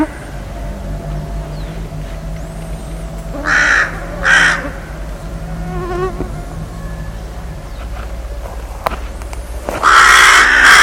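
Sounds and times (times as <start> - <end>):
bird calling with harsh raspy caws: 3.3 - 7.6, 9.7 - 10.8.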